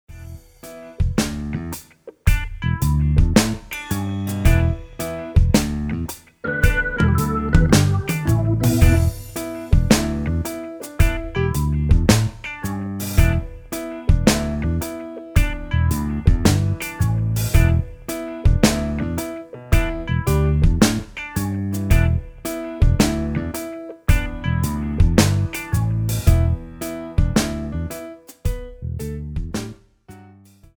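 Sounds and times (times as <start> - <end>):
funk music: 0.1 - 30.6.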